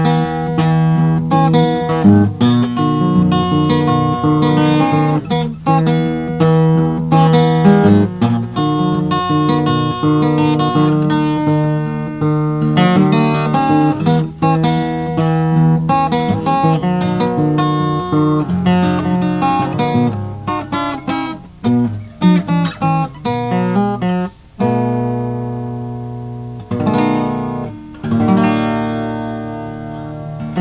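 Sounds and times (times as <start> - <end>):
Oscar Schmidt Stella jumbo guitar: 0.0 - 30.5.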